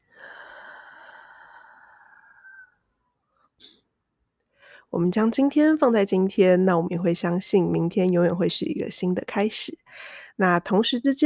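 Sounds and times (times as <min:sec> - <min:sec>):
breathing in and out in a calming exercise: 0:00.0 - 0:03.8, 0:04.5 - 0:04.9, 0:09.8 - 0:10.4
speech: 0:04.9 - 0:11.2.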